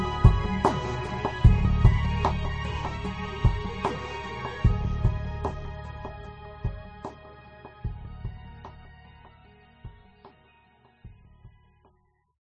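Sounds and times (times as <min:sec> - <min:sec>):
menu music: 0:00.0 - 0:07.2.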